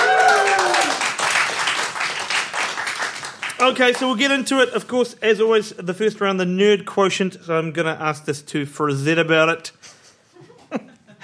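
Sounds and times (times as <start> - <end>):
audience round of applause: 0.0 - 4.2
speech: 3.6 - 9.9, 10.7 - 11.2.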